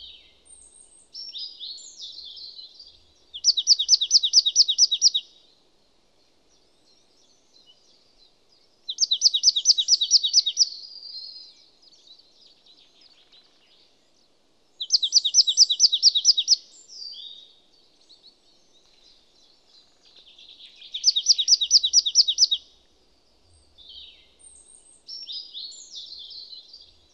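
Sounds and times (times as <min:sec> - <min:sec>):
birds singing: 0:00.0 - 0:05.6, 0:06.2 - 0:27.1.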